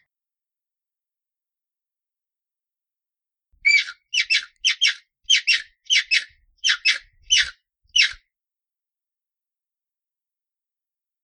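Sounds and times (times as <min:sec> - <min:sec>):
hyrax squeaking: 0:03.7 - 0:08.1.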